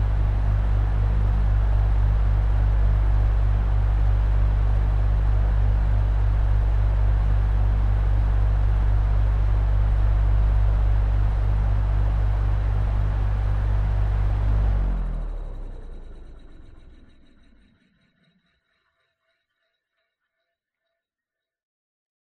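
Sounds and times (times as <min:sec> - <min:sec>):
electric fan running on mid setting: 0:00.0 - 0:16.7.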